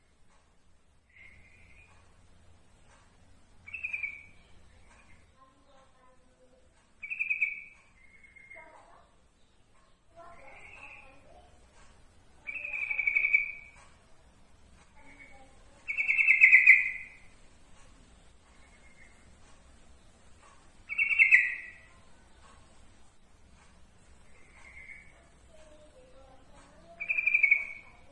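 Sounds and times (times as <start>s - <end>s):
yellow-vented bulbul giving bright notes: 1.1s - 2.1s, 3.6s - 5.3s, 7.0s - 8.8s, 10.2s - 11.4s, 12.4s - 13.8s, 15.0s - 17.4s, 20.8s - 22.1s, 24.3s - 25.3s, 26.8s - 28.1s.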